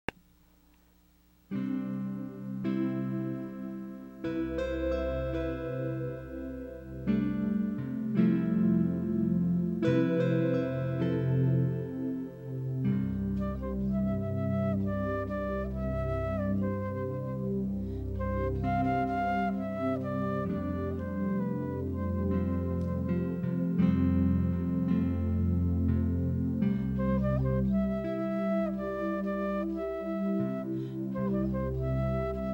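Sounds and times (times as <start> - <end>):
flute: 2.0 - 32.5.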